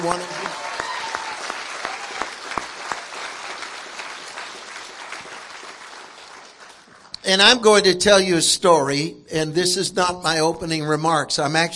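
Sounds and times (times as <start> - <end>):
speech: 0.0 - 0.4, 7.3 - 11.7
audience applause: 0.0 - 7.2.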